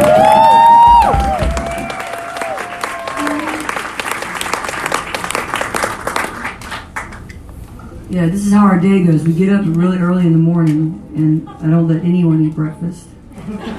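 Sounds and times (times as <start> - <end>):
audience applause and cheering at a church camp concert: 0.0 - 7.3
brief ringing tone: 3.2 - 3.8
speech: 8.2 - 13.7
laughter: 13.3 - 13.7.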